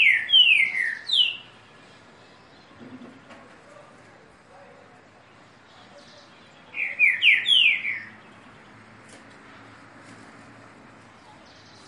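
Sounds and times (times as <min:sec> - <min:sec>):
green-winged saltator singing downslurred whistles: 0:00.0 - 0:01.6, 0:06.7 - 0:08.2.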